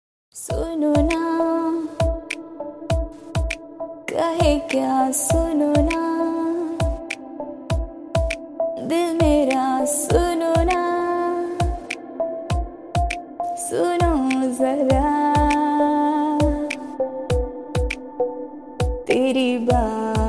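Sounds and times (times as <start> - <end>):
romantic Hindi song ringtone: 0.6 - 20.2.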